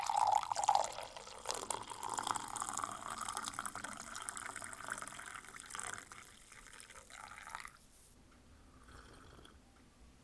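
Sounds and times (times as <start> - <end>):
coffee cleaning: 0.0 - 7.8.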